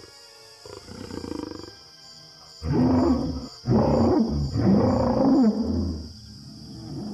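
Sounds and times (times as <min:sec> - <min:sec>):
allosaurus mating call roar: 0:02.6 - 0:07.1.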